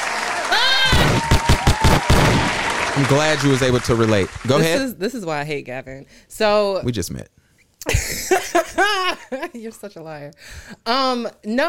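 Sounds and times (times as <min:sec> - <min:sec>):
hand claps: 0:00.0 - 0:04.7
speech: 0:03.0 - 0:11.6.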